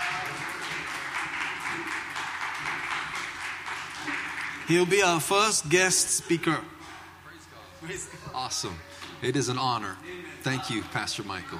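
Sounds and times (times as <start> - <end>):
audience clapping hands in welcome: 0.0 - 5.6
speech: 4.7 - 6.8, 7.8 - 11.5.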